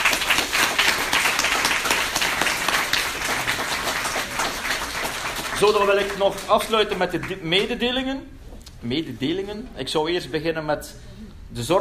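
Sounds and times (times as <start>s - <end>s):
audience applause: 0.0s - 7.4s
speech: 5.6s - 11.7s.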